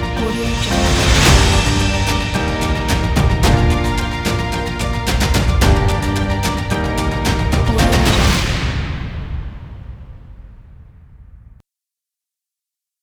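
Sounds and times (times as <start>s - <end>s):
upbeat dombra music: 0.0s - 8.8s.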